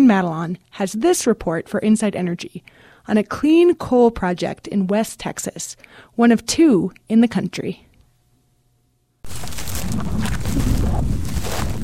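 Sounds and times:
speech: 0.1 - 7.8, 9.2 - 9.6
wind blowing across an empty 600-acre field in Panwell, West Texas: 9.3 - 11.8.

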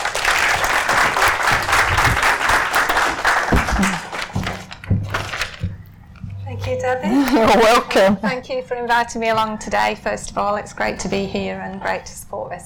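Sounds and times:
audience applause: 0.0 - 4.7
speech: 6.7 - 12.6.

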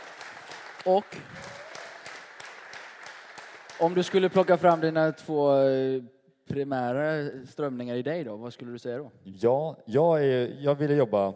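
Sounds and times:
audience applause: 0.0 - 5.2
speech: 0.8 - 1.6, 3.8 - 11.3.

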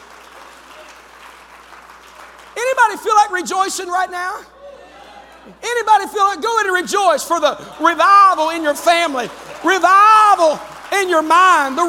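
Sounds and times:
people clapping hands: 0.0 - 4.0, 7.3 - 11.8
speech: 2.9 - 4.6, 5.4 - 11.8.

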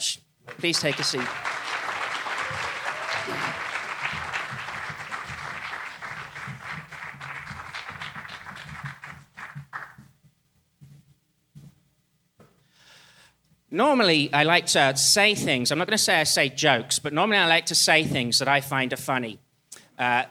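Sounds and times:
audience applause: 0.5 - 10.0
speech: 0.6 - 1.5, 13.8 - 19.4, 20.0 - 20.2.

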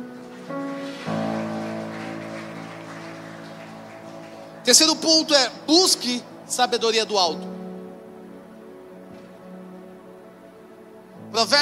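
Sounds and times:
audience applauding: 0.0 - 6.0
speech: 4.7 - 7.5, 11.4 - 11.6.

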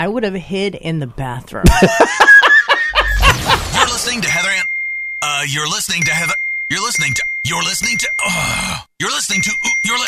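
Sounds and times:
speech: 0.0 - 2.4, 4.1 - 10.0
laughter: 1.6 - 4.6
mobile phone ringing: 4.3 - 8.2, 9.1 - 10.0.

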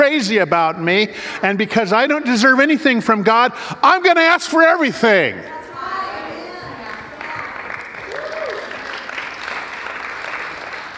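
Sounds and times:
speech: 0.1 - 5.6
audience clapping: 6.8 - 10.9.

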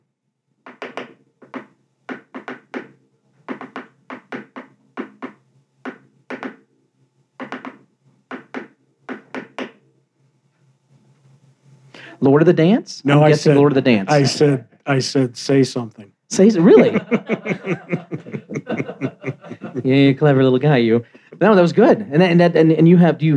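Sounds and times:
Morse code tapped on a hard surface: 0.7 - 2.9, 3.5 - 6.6, 7.4 - 9.8
speech: 12.2 - 18.0, 19.8 - 23.3
laughter: 13.2 - 16.0, 16.6 - 20.2.

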